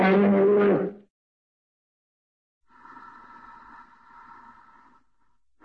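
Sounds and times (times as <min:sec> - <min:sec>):
cartoon bear cub groaning: 0:00.0 - 0:01.0.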